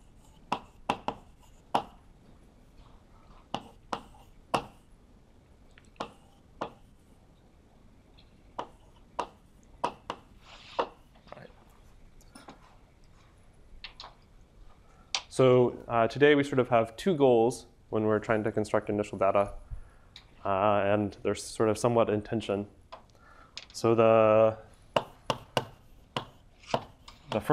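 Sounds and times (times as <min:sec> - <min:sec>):
writing down a number during a lecture: 0:00.0 - 0:02.1, 0:03.5 - 0:04.8, 0:05.8 - 0:07.0, 0:08.5 - 0:11.0, 0:24.9 - 0:27.5
speech: 0:15.4 - 0:19.6, 0:20.4 - 0:22.8, 0:23.8 - 0:24.7, 0:27.4 - 0:27.5.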